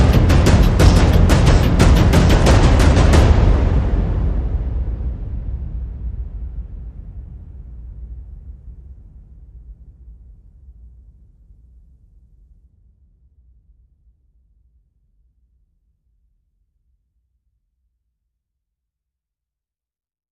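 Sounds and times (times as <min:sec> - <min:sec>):
percussion: 0:00.0 - 0:05.1.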